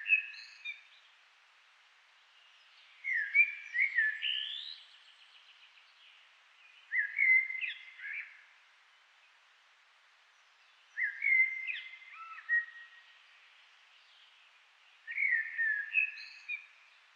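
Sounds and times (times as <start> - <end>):
Eurasian blackbird song: 0.0 - 0.9, 2.7 - 5.6, 6.7 - 8.4, 10.9 - 13.3, 15.0 - 16.9.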